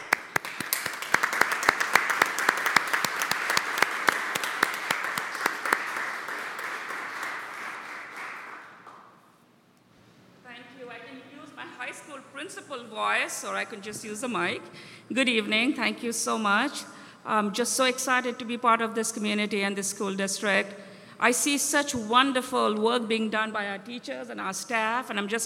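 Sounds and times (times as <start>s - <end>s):
audience applauding to welcome a new school district superintendent: 0.0s - 9.2s
speech: 12.7s - 25.4s.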